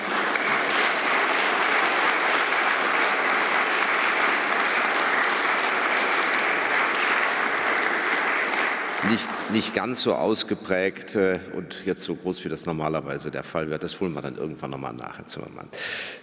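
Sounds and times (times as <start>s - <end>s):
audience applause in a large hall: 0.0s - 10.2s
speech: 9.1s - 16.2s.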